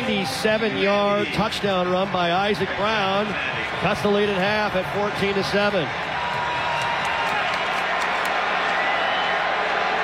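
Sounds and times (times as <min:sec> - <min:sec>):
stadium crowd roaring: 0:00.0 - 0:10.0
speech: 0:00.1 - 0:06.1
claps and whoops: 0:05.8 - 0:10.0.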